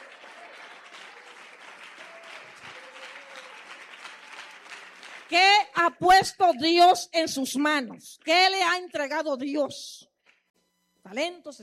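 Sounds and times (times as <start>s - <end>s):
audience applauding: 0.0s - 5.4s
speech: 5.3s - 10.1s, 11.1s - 11.6s.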